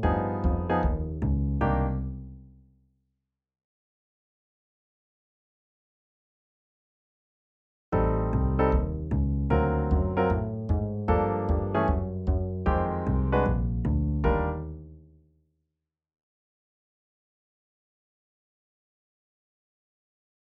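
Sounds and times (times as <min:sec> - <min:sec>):
etude without drums: 0:00.0 - 0:02.2, 0:08.0 - 0:14.9.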